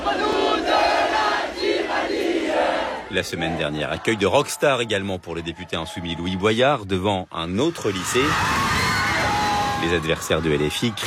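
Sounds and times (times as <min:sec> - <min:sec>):
crowd of high school students singing the national anthem in front of a blockaded lycée: 0:00.0 - 0:04.8
speech: 0:03.1 - 0:08.9, 0:09.8 - 0:11.0.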